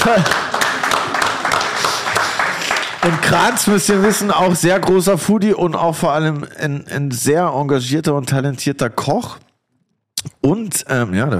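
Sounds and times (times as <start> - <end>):
speech: 0.0 - 0.6, 3.1 - 9.4, 10.4 - 11.3
small group applauding: 0.0 - 5.0.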